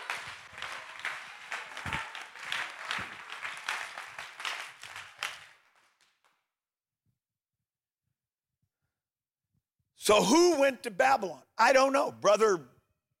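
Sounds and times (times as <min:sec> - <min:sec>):
audience clapping hands in praise: 0:00.0 - 0:06.5
speech: 0:10.1 - 0:12.7.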